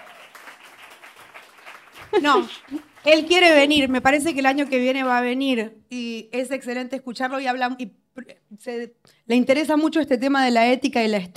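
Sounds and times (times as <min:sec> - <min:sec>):
crowd applause: 0:00.0 - 0:04.8
speech: 0:02.1 - 0:11.3.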